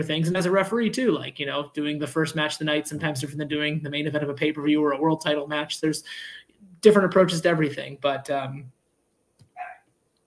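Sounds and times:
speech: 0:00.0 - 0:08.8
dog barking: 0:09.6 - 0:09.8.

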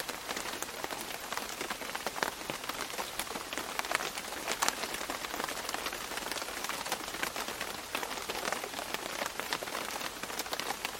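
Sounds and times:
gentle rain on a hard surface: 0:00.0 - 0:10.9.

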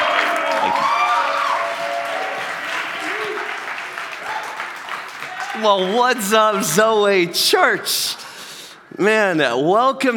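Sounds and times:
church congregation applauding its youth pastor at a Sunday service: 0:00.0 - 0:07.3
speech: 0:05.6 - 0:08.2, 0:09.0 - 0:10.1.

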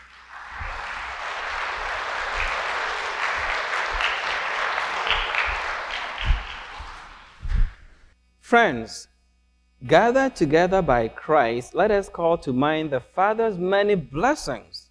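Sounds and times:
audience clapping: 0:00.0 - 0:08.1
speech: 0:08.5 - 0:09.1, 0:09.8 - 0:14.7.

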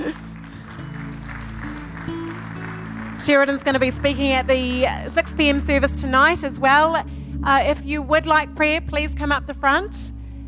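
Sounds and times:
audience applause: 0:00.0 - 0:04.8
speech: 0:03.2 - 0:10.2.

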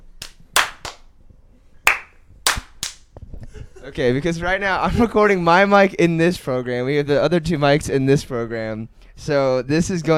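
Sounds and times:
hand claps for syncing microphones: 0:00.2 - 0:01.1, 0:01.9 - 0:03.0
speech: 0:03.8 - 0:10.1.

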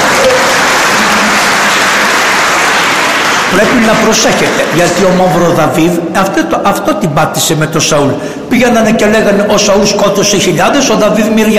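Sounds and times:
audience applause: 0:00.0 - 0:05.4
speech: 0:03.5 - 0:11.5.

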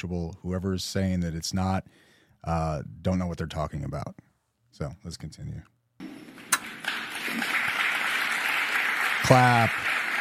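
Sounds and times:
speech: 0:00.0 - 0:05.8, 0:09.2 - 0:09.9
audience applause: 0:06.1 - 0:10.1.

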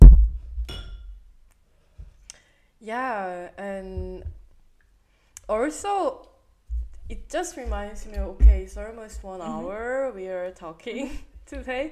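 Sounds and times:
glasses clinking in a toast: 0:00.7 - 0:01.1
speech: 0:02.8 - 0:04.4, 0:05.5 - 0:06.3, 0:07.1 - 0:11.9.

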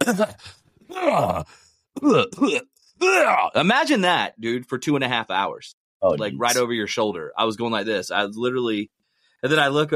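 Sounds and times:
man vocally imitating an old man coughing: 0:00.0 - 0:03.4
speech: 0:00.0 - 0:09.9.

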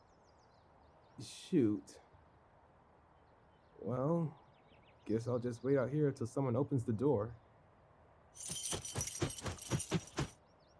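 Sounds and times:
speech: 0:01.2 - 0:02.0, 0:03.8 - 0:04.4, 0:05.1 - 0:07.4, 0:08.4 - 0:08.8
bunch of keys jangling: 0:08.4 - 0:10.3.

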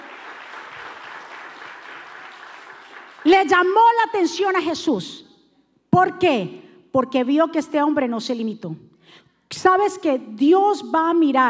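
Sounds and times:
audience clapping loudly: 0:00.0 - 0:03.8
speech: 0:03.2 - 0:05.3, 0:06.0 - 0:11.4.

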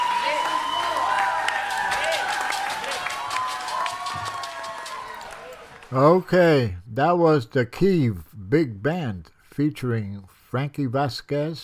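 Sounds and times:
audience applause after a big band salsa performance: 0:00.0 - 0:06.0
speech: 0:05.9 - 0:11.6.

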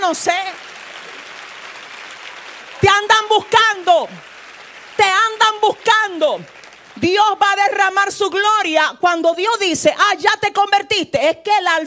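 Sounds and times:
audience applause: 0:00.0 - 0:07.8
speech: 0:00.1 - 0:00.6, 0:03.0 - 0:04.3, 0:05.0 - 0:11.8.

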